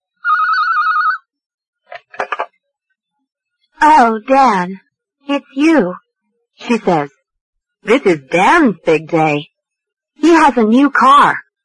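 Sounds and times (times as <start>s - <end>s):
telephone ringing: 0.2s - 1.3s
speech: 3.8s - 6.0s, 6.6s - 7.2s, 7.8s - 9.5s, 10.2s - 11.4s.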